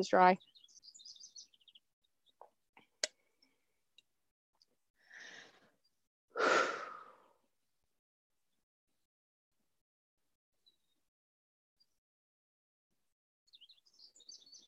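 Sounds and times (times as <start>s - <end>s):
deep breaths: 5.0s - 5.8s, 6.4s - 7.4s.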